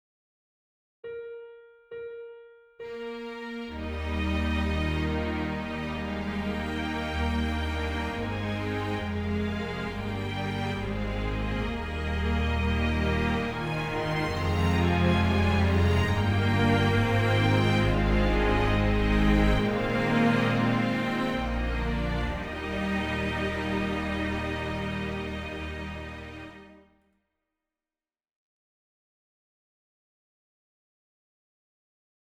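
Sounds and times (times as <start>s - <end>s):
Armenian folk song: 3.7s - 26.5s.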